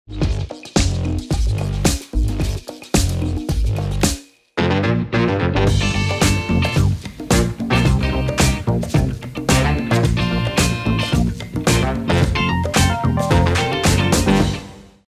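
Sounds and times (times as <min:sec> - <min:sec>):
music: 0:00.1 - 0:15.0.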